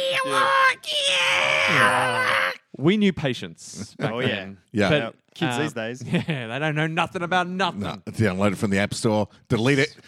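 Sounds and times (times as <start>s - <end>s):
speech: 0.2s - 1.0s, 1.7s - 10.0s
person imitating a computer tape loading screech: 1.2s - 2.6s.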